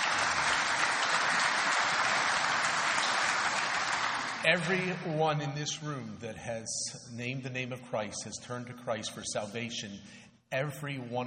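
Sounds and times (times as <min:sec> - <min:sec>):
audience clapping: 0:00.0 - 0:05.2
speech: 0:04.4 - 0:11.2.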